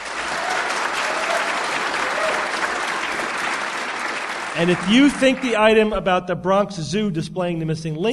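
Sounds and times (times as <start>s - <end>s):
audience applause: 0.0s - 5.9s
speech: 4.6s - 8.1s.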